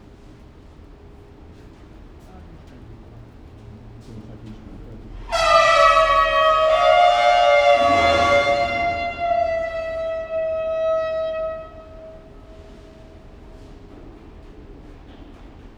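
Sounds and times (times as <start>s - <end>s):
grates opening at Nyíregyháza zoo: 5.3s - 12.6s
Asian elephant trumpeting at Nyíregyháza zoo: 5.3s - 12.7s.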